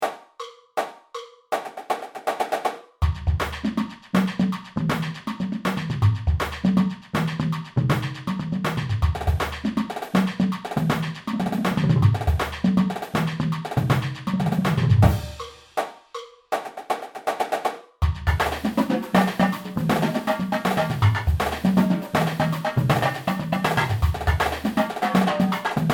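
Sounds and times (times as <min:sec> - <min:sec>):
standard 160 BPM drum beat: 0:00.0 - 0:25.9.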